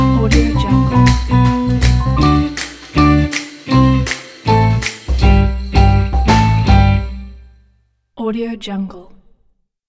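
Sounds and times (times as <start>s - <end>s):
jazzy Christmas tune: 0.0s - 7.5s.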